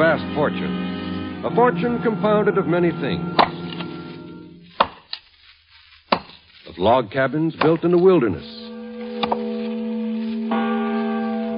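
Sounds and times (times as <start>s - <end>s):
speech: 0.0s - 3.4s, 6.8s - 8.6s
large bell ringing: 0.0s - 4.6s, 7.5s - 11.5s.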